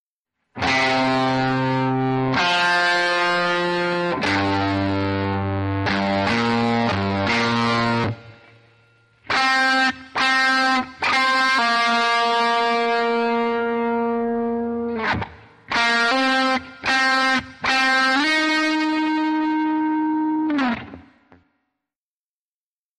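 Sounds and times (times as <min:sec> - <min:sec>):
rock guitar: 0:00.5 - 0:21.5.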